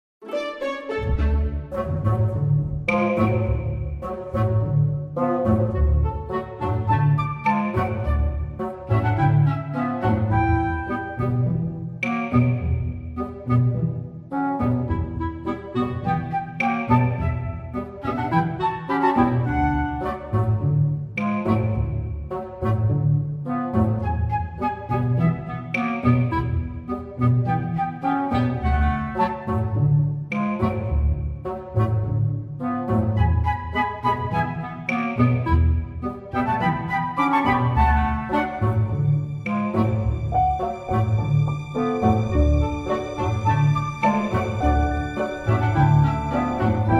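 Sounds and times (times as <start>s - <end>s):
orchestral cover: 0.2s - 46.9s.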